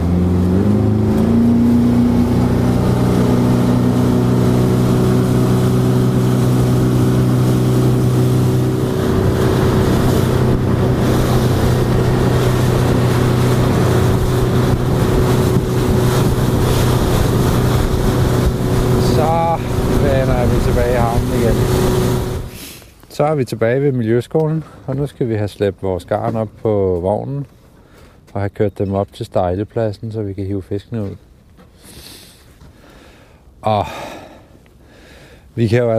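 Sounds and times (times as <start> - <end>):
motorboat engine speeding up: 0.0 - 22.6
rushing water: 0.0 - 22.8
wind buffeting: 0.6 - 22.6
speech: 23.2 - 27.6, 28.4 - 31.3, 33.6 - 34.0, 35.6 - 35.9.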